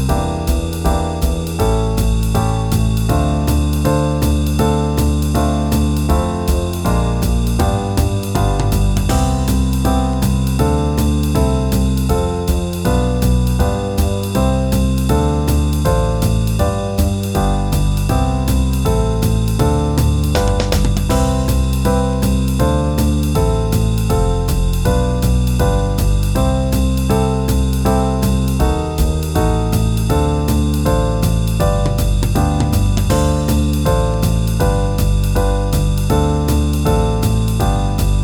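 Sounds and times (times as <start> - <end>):
backing track in C major: 0.0 - 38.2.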